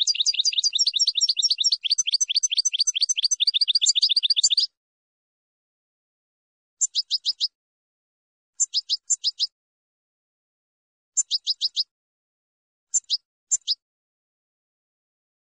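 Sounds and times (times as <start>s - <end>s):
finch song: 0.0s - 4.8s, 6.8s - 7.6s, 8.6s - 9.6s, 11.2s - 11.9s, 12.9s - 13.8s.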